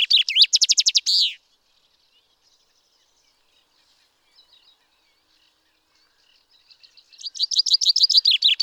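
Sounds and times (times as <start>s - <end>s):
common chaffinch song: 0.0s - 8.6s.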